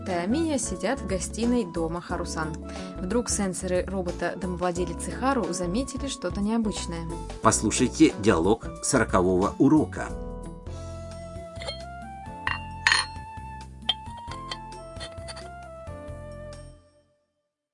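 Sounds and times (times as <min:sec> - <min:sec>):
speech: 0:00.1 - 0:10.3
dishes rattling during an earthquake: 0:11.6 - 0:11.8, 0:12.4 - 0:13.2, 0:13.9 - 0:15.5.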